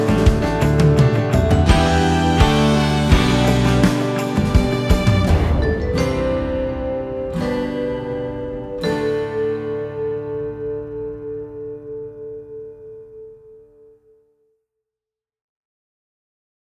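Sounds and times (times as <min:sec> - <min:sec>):
Americana train beat rhythm: 0:00.0 - 0:05.6
melodic metal percussion: 0:00.0 - 0:10.1.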